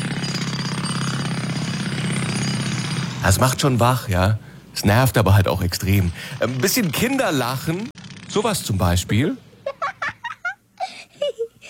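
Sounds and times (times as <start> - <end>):
jackhammer pounding: 0.0 - 9.2
speech: 3.2 - 9.4
laughter: 9.6 - 11.6.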